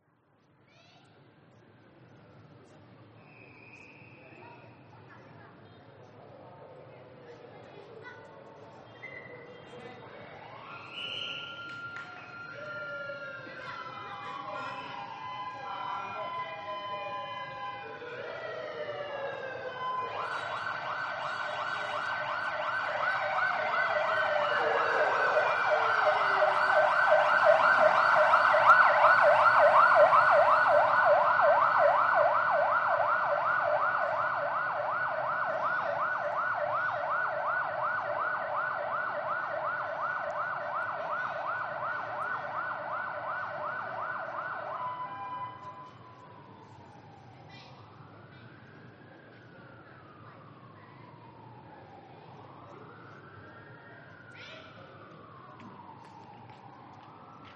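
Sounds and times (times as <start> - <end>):
police sirens of a presidential motorcade convoy escort: 8.3 - 57.5
police cars and motorcycles of a president motorcade passing: 15.0 - 37.7.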